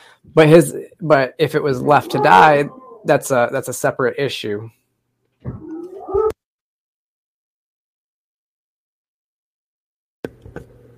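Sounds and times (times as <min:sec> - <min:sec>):
speech: 0:00.2 - 0:04.8, 0:05.4 - 0:05.7
dogs whining: 0:01.8 - 0:03.2, 0:05.5 - 0:06.4.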